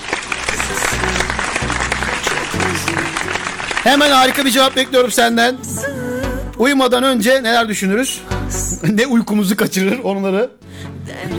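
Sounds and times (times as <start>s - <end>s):
laughter: 0.0s - 5.3s
applause: 0.0s - 5.4s
speech: 3.9s - 5.9s, 6.6s - 11.3s.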